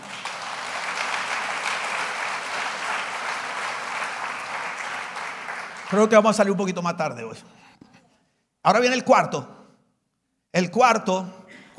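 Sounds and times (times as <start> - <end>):
audience applause: 0.0 - 6.5
speech: 5.9 - 7.7, 8.6 - 9.6, 10.5 - 11.7.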